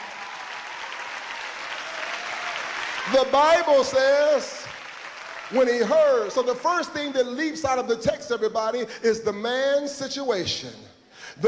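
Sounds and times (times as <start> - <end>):
audience clapping: 0.0 - 7.0
speech: 3.1 - 4.6, 5.5 - 11.4.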